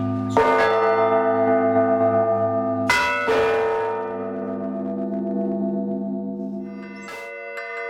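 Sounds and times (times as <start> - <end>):
deep church bell ringing: 0.0 - 7.8.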